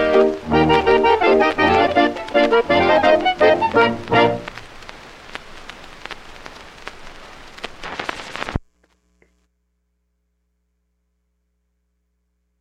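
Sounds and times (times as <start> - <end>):
hambo folk dance music: 0.0 - 5.0.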